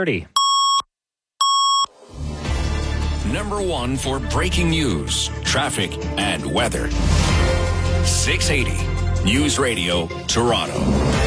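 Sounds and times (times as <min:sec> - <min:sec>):
speech: 0:00.0 - 0:00.3, 0:03.3 - 0:11.2
double time-signal tones: 0:00.4 - 0:01.9.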